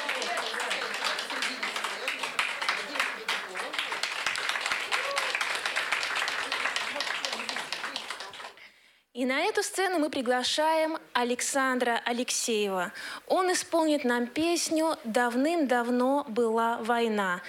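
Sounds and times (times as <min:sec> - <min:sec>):
audience applause: 0:00.0 - 0:08.6
speech: 0:09.2 - 0:17.4.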